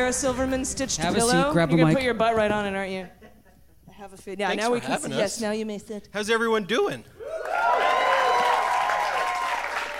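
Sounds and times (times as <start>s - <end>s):
speech: 0.0s - 3.2s, 4.0s - 7.7s
live audience applauding: 7.2s - 9.9s.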